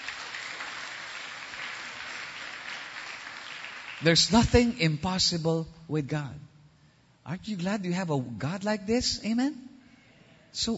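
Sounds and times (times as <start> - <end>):
church congregation applauding: 0.0 - 4.8
speech: 4.0 - 6.5, 7.3 - 9.7, 10.5 - 10.7.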